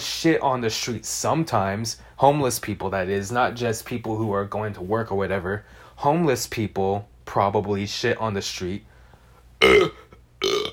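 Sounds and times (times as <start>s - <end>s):
speech: 0.2s - 8.9s, 9.6s - 10.0s
loud throaty burps: 9.6s - 10.7s.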